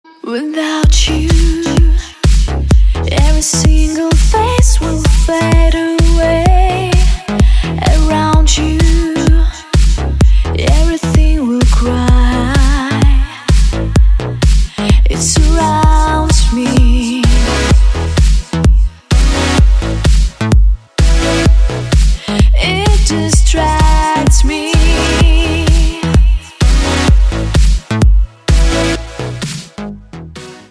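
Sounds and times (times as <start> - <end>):
vocal mix music: 0.0 - 30.7.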